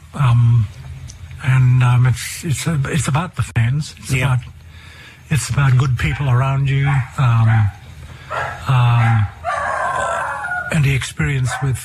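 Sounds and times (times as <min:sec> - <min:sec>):
speech: 0:00.1 - 0:00.8, 0:01.4 - 0:04.6, 0:05.3 - 0:09.3, 0:10.7 - 0:11.8
dog barking: 0:06.0 - 0:10.7, 0:11.4 - 0:11.8.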